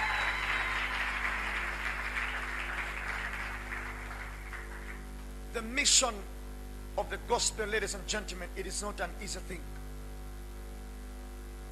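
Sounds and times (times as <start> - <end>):
audience clapping hands: 0.0 - 5.2
low electrical hum: 0.0 - 11.7
speech: 5.6 - 6.3, 7.0 - 9.7.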